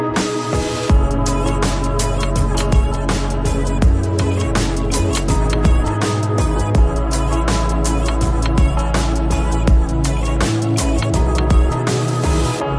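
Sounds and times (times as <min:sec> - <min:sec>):
drums: 0:00.2 - 0:12.6.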